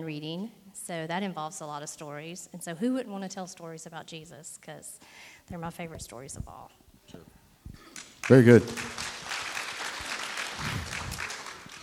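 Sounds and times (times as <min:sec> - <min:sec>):
speech: 0:00.0 - 0:07.3, 0:08.3 - 0:09.1
audience applause: 0:08.0 - 0:11.8.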